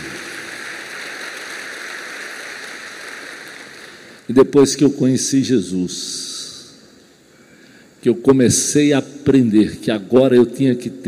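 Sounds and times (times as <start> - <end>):
audience applauding: 0.0 - 4.3
speech: 4.3 - 6.3, 8.0 - 11.0.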